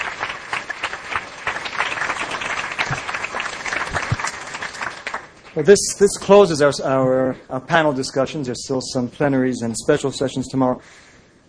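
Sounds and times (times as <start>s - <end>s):
audience applause for a panel: 0.0s - 5.6s
speech: 5.6s - 11.1s.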